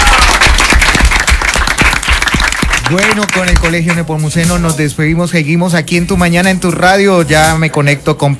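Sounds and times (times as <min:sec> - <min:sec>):
applause: 0:00.0 - 0:04.1
speech: 0:02.9 - 0:08.3.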